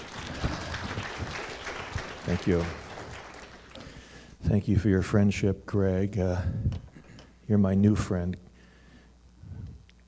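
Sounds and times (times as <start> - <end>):
audience clapping: 0.0 - 4.0
speech: 2.3 - 2.8, 4.5 - 6.8, 7.5 - 8.4.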